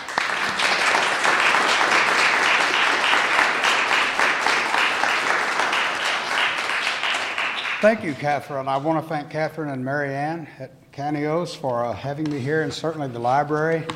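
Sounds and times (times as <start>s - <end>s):
audience in Sag Harbor clapping to welcome a speaker: 0.0s - 8.4s
speech: 7.8s - 13.9s.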